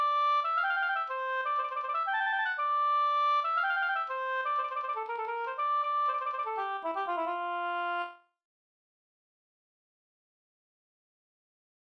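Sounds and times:
polska folk dance tune: 0:00.0 - 0:08.2.

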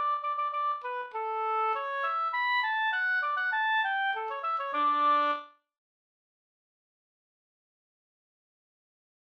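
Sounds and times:
folk walking tune: 0:00.0 - 0:05.5.

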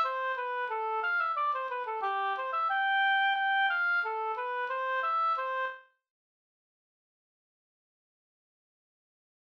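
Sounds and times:
folk walking tune: 0:00.0 - 0:05.8.

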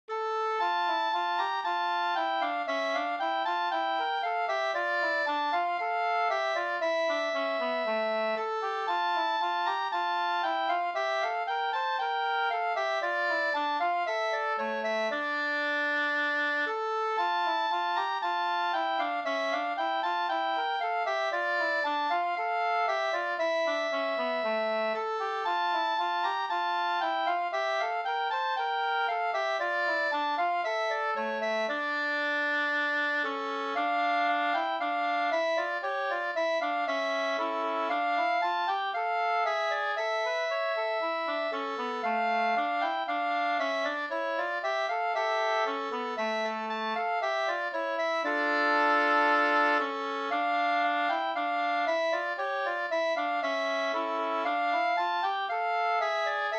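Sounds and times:
old wedding march music: 0:00.6 - 0:56.5.

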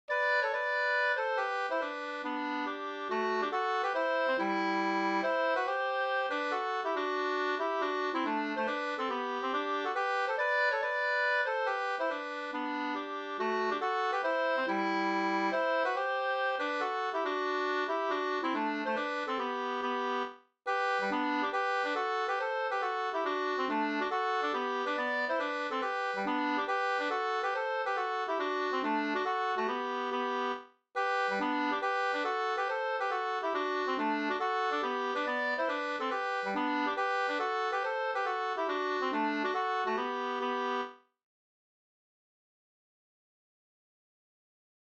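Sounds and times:
mazurka: 0:00.1 - 0:40.9.

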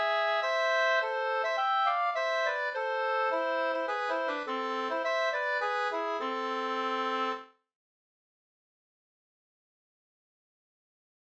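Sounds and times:
polska folk dance tune: 0:00.0 - 0:07.5.

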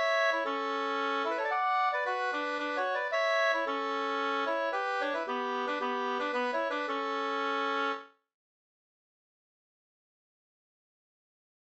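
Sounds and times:
polska springdans folk dance music: 0:00.0 - 0:07.9.

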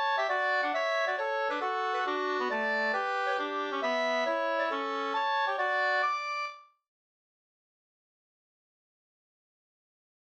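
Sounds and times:
mazurka music: 0:00.0 - 0:06.6.

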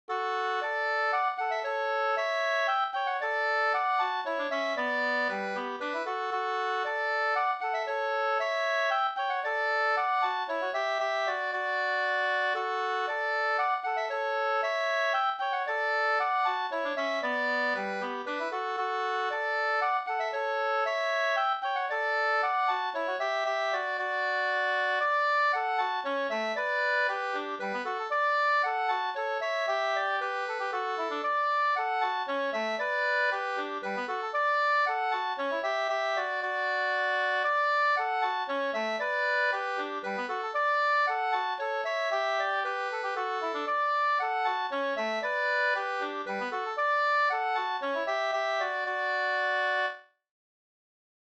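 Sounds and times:
slangpolska folk dance tune: 0:00.1 - 0:50.0.

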